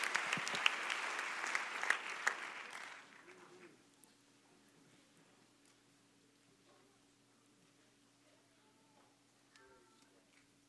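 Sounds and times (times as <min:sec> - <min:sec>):
audience clapping hands: 0:00.0 - 0:03.7.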